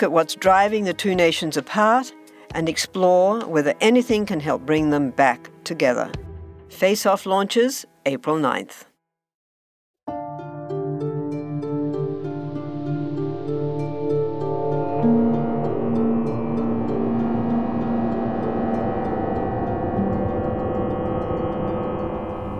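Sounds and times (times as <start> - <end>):
speech: 0.0 - 8.9
sci-fi tractor beam sound effect harmonic drone: 11.5 - 22.5.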